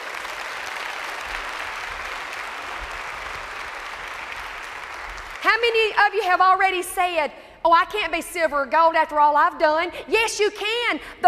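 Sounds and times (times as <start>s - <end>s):
audience applause: 0.0s - 5.7s
speech: 5.4s - 11.2s.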